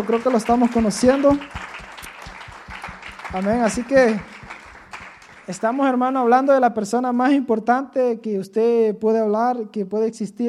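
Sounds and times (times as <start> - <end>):
speech: 0.0 - 1.7, 3.3 - 4.3, 5.5 - 10.4
crowd clapping: 0.0 - 6.2.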